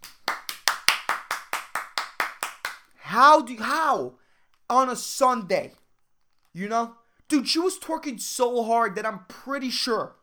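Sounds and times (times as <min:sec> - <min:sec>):
fast loud hand clapping: 0:00.0 - 0:03.3
speech: 0:03.2 - 0:05.8, 0:06.6 - 0:10.2.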